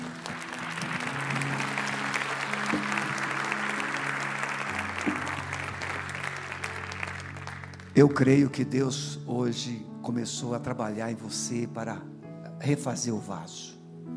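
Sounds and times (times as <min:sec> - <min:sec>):
audience applauding: 0:00.0 - 0:08.2
speech: 0:08.0 - 0:13.8.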